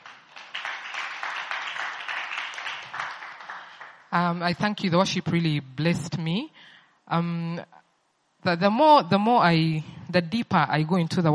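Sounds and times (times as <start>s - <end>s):
audience clapping for the choir: 0.0s - 4.1s
speech: 4.1s - 7.8s, 8.4s - 11.3s.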